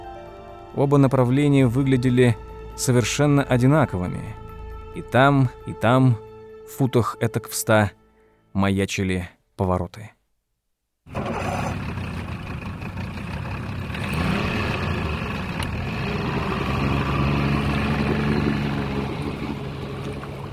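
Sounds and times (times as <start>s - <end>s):
speech: 0.8s - 4.4s, 5.0s - 10.2s
motorboat engine puttering as the boat pulls away from a harbor: 11.1s - 20.5s.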